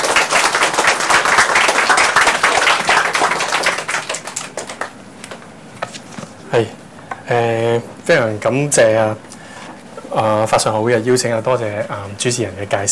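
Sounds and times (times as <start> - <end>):
warm applause welcoming a speaker: 0.0 - 5.0
speech: 6.5 - 9.3, 10.1 - 12.8.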